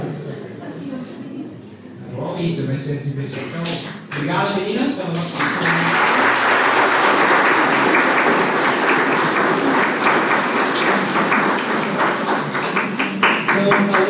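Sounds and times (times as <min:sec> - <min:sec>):
speech: 0:02.4 - 0:05.9
group clapping: 0:05.1 - 0:14.0.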